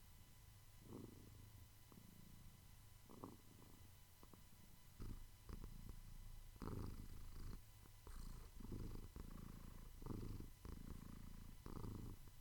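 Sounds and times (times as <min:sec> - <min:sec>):
cat purring: 0:00.8 - 0:12.3.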